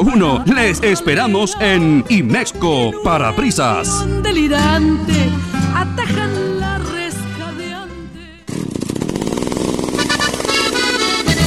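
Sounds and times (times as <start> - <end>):
speech: 0.2 - 6.2
chainsaw engine revving: 8.5 - 11.4.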